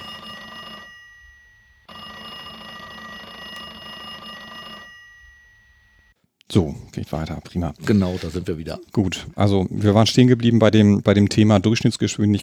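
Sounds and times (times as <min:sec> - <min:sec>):
telephone ringing: 0:00.0 - 0:06.2
speech: 0:06.5 - 0:12.4.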